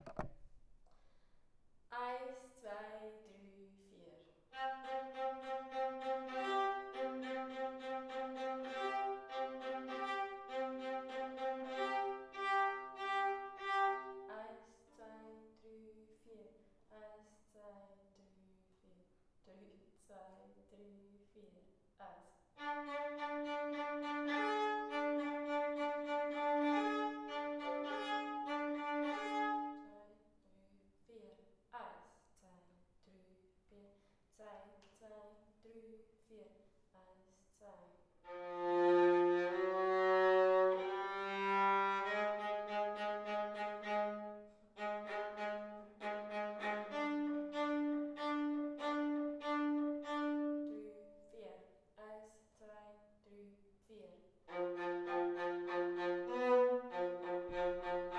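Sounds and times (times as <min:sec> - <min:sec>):
viola: 0:04.5 - 0:14.5, 0:22.6 - 0:30.0, 0:38.3 - 0:51.3, 0:54.5 - 0:58.1.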